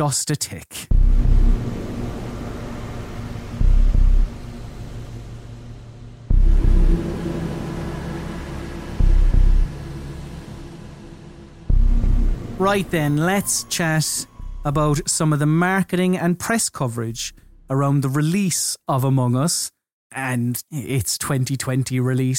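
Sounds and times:
speech: 0:00.0 - 0:01.0, 0:12.6 - 0:22.3
heavy bass thumps: 0:00.9 - 0:13.7, 0:14.3 - 0:15.0
low rumbling hissy ambient drone from video game trailer soundtrack: 0:00.9 - 0:16.1.

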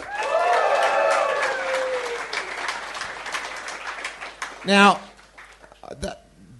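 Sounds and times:
high whooping cheer: 0:00.0 - 0:02.6
audience applause for the DJ: 0:00.0 - 0:05.7
speech: 0:04.7 - 0:05.0, 0:05.9 - 0:06.2.

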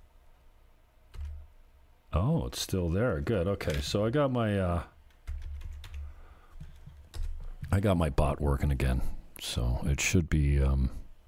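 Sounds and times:
typing on a computer keyboard: 0:01.1 - 0:01.4, 0:05.1 - 0:07.8
speech: 0:02.2 - 0:04.9, 0:07.8 - 0:11.0.

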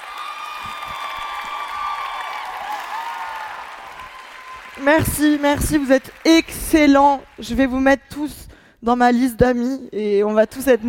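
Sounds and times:
audience clapping: 0:00.0 - 0:08.0
speech: 0:04.8 - 0:10.8.

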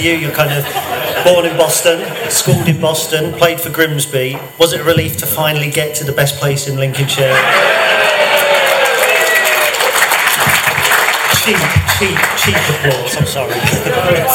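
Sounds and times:
laughter: 0:00.0 - 0:03.6, 0:07.1 - 0:14.3
speech: 0:00.0 - 0:08.2, 0:11.4 - 0:14.3
whoops and shouts: 0:07.4 - 0:10.0
crowd applauding: 0:07.4 - 0:14.3.

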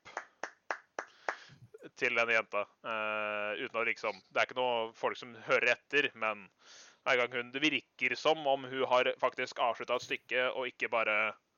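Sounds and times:
polite clapping in a room: 0:00.0 - 0:01.6
speech: 0:02.0 - 0:11.4.

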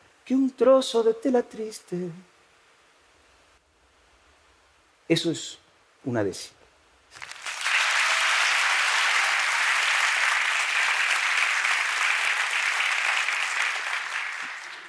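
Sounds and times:
speech: 0:00.3 - 0:02.3, 0:05.1 - 0:07.3
audience applauding: 0:07.2 - 0:14.8.

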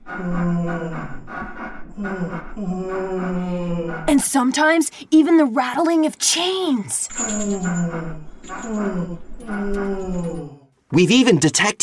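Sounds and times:
weird drawn-out creaking: 0:00.0 - 0:04.2, 0:07.1 - 0:10.7
speech: 0:02.0 - 0:11.8.

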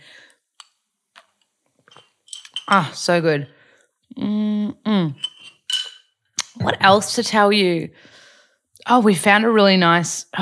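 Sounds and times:
glass straw clinking: 0:01.9 - 0:02.7, 0:05.2 - 0:06.1
speech: 0:02.7 - 0:03.6, 0:04.2 - 0:05.3, 0:06.6 - 0:08.2, 0:08.8 - 0:10.4.

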